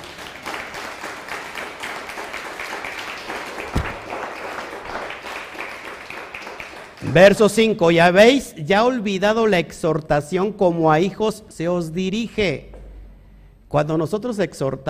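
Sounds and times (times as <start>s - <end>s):
audience applause: 0.0s - 7.2s
low thump: 3.7s - 4.2s
speech: 7.0s - 12.7s, 13.7s - 14.8s.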